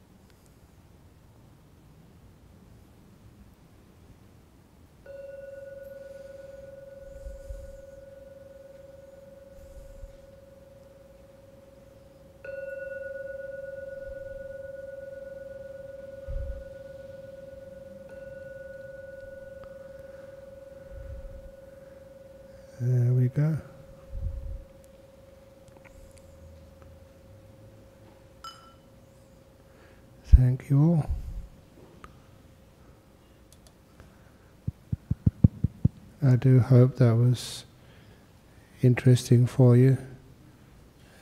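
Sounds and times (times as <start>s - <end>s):
meditation gong ringing: 5.0s - 29.0s
speech: 23.4s - 23.7s, 30.4s - 31.2s, 36.3s - 37.7s, 38.8s - 40.1s.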